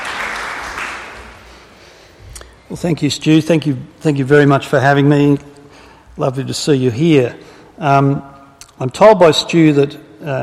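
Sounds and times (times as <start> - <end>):
room full of people clapping: 0.0 - 1.7
speech: 2.7 - 5.5, 6.2 - 10.4.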